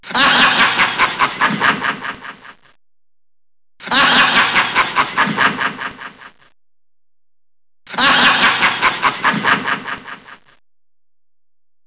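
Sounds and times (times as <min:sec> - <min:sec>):
evil laugh: 0:00.0 - 0:02.8, 0:03.8 - 0:06.5, 0:07.9 - 0:10.6.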